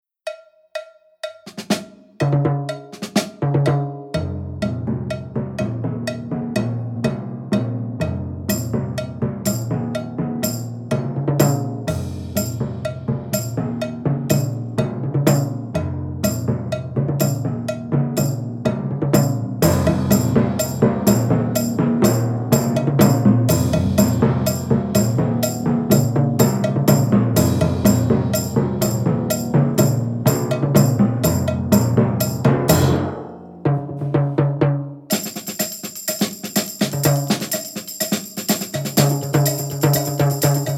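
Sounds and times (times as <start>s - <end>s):
timpani and ting mix: 0.2s - 40.7s.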